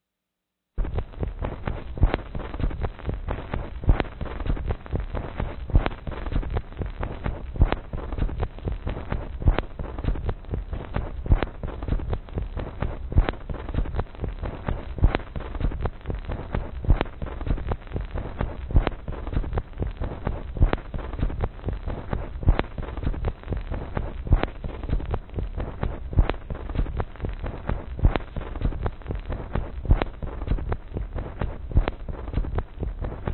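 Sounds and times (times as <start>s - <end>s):
groove music: 0.8s - 33.3s.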